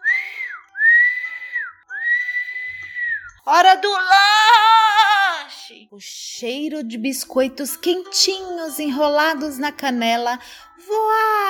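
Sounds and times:
person whistling in imitation of a dove: 0.0 - 3.4
speech: 3.4 - 4.8, 5.7 - 11.4.

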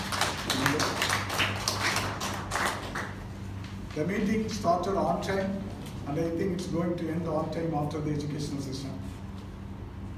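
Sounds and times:
audience applause: 0.0 - 3.2
speech: 4.0 - 9.1.

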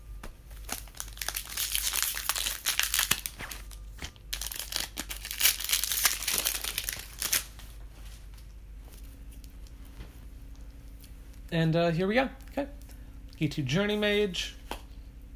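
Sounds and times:
card booster pack plastic wrapper being torn open: 0.6 - 7.6
speech: 11.5 - 12.8, 13.4 - 14.6.

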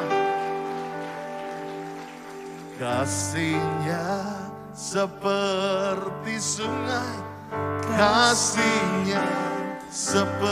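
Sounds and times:
crowd clapping: 0.0 - 4.4
speech: 2.8 - 10.5.

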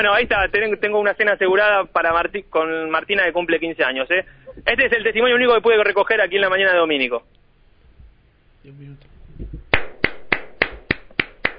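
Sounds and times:
speech: 0.0 - 7.4, 8.6 - 9.1
hand clapping: 9.7 - 11.5.

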